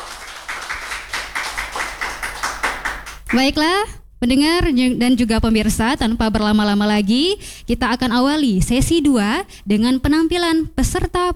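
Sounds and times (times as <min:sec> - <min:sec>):
audience applause for finalists: 0:00.0 - 0:03.4
speech: 0:03.3 - 0:11.3.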